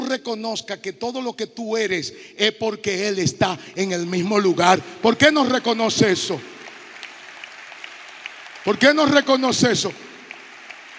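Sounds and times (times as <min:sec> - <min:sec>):
speech: 0:00.1 - 0:06.6, 0:08.6 - 0:10.1
audience applause: 0:05.0 - 0:10.9.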